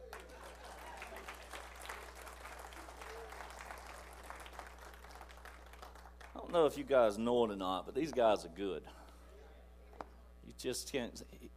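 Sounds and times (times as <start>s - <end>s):
audience applauding a band: 0.0s - 6.5s
speech: 6.5s - 9.0s, 10.6s - 11.5s.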